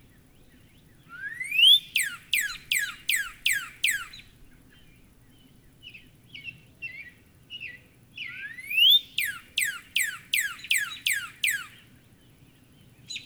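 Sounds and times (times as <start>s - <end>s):
Northern cardinal singing steep downslurred whistles: 1.2s - 4.2s, 8.3s - 11.8s.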